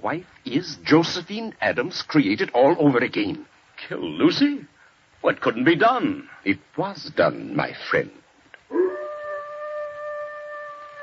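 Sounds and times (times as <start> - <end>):
speech: 0.0 - 8.8
dog howling: 8.7 - 11.0.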